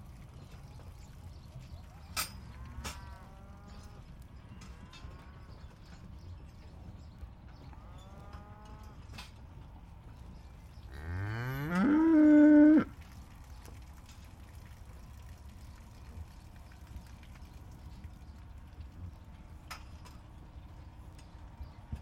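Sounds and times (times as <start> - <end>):
background hum: 0.0 - 22.0
cattle mooing: 2.5 - 4.1, 10.9 - 12.9.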